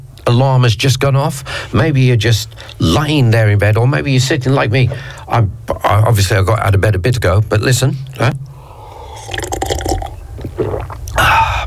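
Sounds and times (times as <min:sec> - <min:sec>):
speech: 0:00.2 - 0:08.5
black coffee being poured into a cup: 0:08.9 - 0:11.2.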